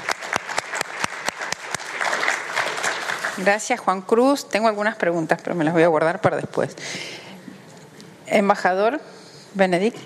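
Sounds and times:
audience applause: 0.0s - 3.6s
speech: 3.4s - 7.2s, 8.3s - 10.0s.

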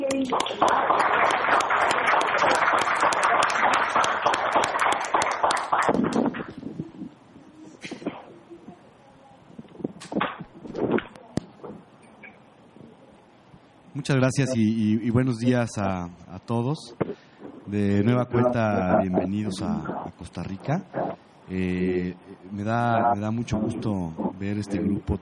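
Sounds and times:
speech: 0.2s - 1.1s, 14.1s - 17.0s, 17.7s - 25.1s
audience applause: 0.2s - 6.6s.

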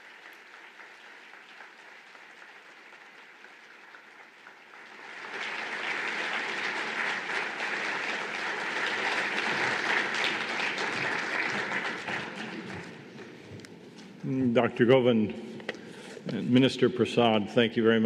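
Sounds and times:
audience applause: 0.0s - 13.4s
speech: 14.6s - 15.5s, 16.3s - 18.0s.

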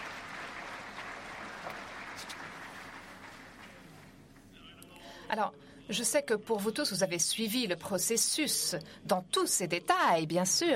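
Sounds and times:
audience applause: 0.0s - 4.2s
speech: 5.3s - 10.7s.

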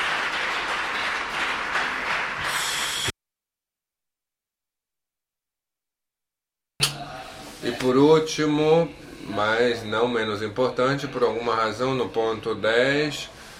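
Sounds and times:
audience applause: 0.0s - 3.1s
speech: 7.7s - 13.4s.

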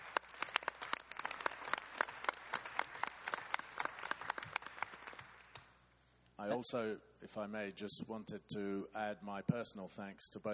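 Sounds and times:
round of applause: 0.0s - 5.8s
speech: 6.4s - 10.5s.

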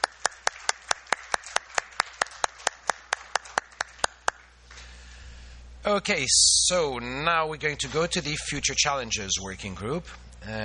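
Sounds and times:
audience applause: 0.0s - 4.5s
speech: 5.8s - 10.6s.

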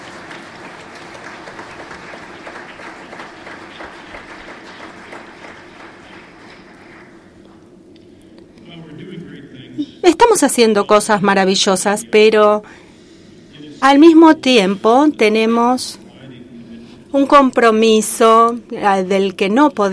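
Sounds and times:
audience applause: 0.0s - 7.4s
speech: 10.1s - 12.8s, 13.8s - 16.0s, 17.1s - 19.9s.

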